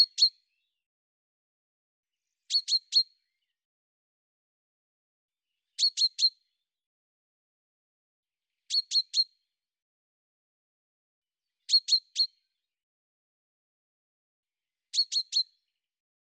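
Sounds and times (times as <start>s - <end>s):
bird chirping: 0.0s - 0.8s, 2.3s - 3.6s, 5.6s - 6.6s, 8.6s - 9.4s, 11.5s - 12.6s, 14.9s - 15.7s.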